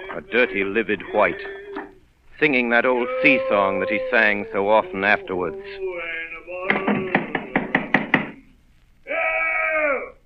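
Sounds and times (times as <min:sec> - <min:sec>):
sustained wavering voice-like cry: 0:00.0 - 0:02.0, 0:02.9 - 0:08.4, 0:09.1 - 0:10.2
speech: 0:00.2 - 0:01.6, 0:02.4 - 0:05.9
sharp loud knocking on a door: 0:06.7 - 0:08.4.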